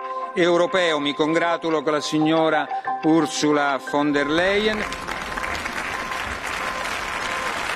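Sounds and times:
speech: 0:00.3 - 0:05.1
parliament applause: 0:04.3 - 0:07.7.

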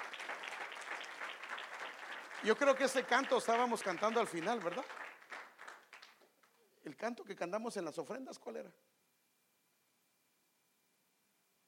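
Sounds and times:
audience applause: 0:00.0 - 0:06.3
speech: 0:02.4 - 0:05.0, 0:07.0 - 0:08.9.

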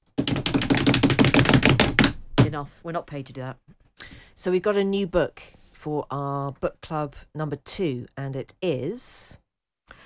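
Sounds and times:
improvised drum roll: 0:00.2 - 0:02.2
speech: 0:02.5 - 0:03.8, 0:04.4 - 0:09.4.

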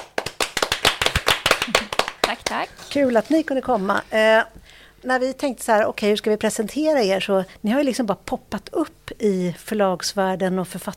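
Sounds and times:
applause: 0:00.0 - 0:02.6
speech: 0:02.5 - 0:10.9.

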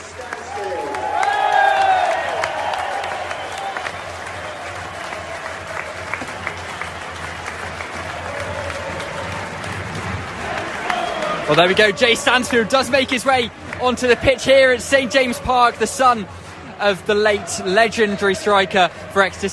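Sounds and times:
football crowd applauding a substitute: 0:00.0 - 0:19.5
football crowd whistles and cheers: 0:00.2 - 0:09.8, 0:10.5 - 0:12.4
speech: 0:11.5 - 0:19.5.

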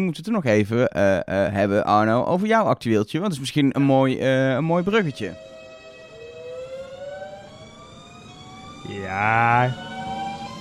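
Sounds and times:
speech: 0:00.0 - 0:05.5, 0:08.9 - 0:09.9
new-generation Intercity train whining on departure: 0:04.2 - 0:10.5.

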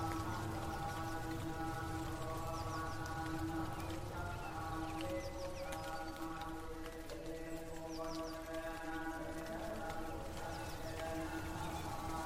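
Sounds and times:
Thai Buddhist monk chanting: 0:00.0 - 0:12.2.

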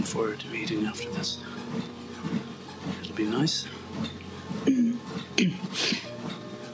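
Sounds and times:
speech: 0:00.2 - 0:02.4, 0:03.2 - 0:04.8
person sniffling: 0:04.7 - 0:06.1.

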